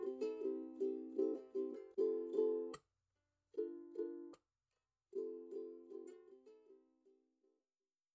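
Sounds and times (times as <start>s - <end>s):
clean ukulele: 0.0s - 2.8s, 3.6s - 4.4s, 5.2s - 7.2s.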